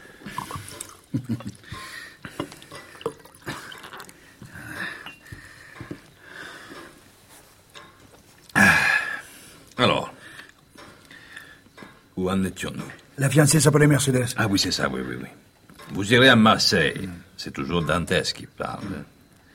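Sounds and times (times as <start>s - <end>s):
liquid gurgling into a drinking glass: 0.3s - 1.6s, 2.3s - 4.2s
speech: 1.1s - 1.6s, 12.3s - 19.1s.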